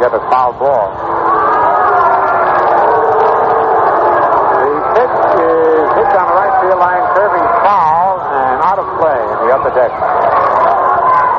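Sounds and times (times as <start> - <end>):
speech: 0.0 - 1.2, 5.0 - 10.9
ballpark fans booing a special policeman: 0.0 - 11.3.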